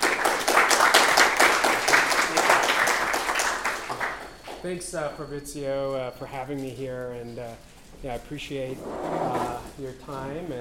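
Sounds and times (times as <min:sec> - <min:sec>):
audience round of applause: 0:00.0 - 0:04.7
speech: 0:04.6 - 0:10.5.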